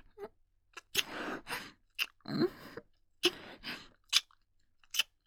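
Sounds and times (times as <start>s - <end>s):
kissing sound: 0.8s - 1.2s, 4.1s - 4.3s, 4.9s - 5.1s.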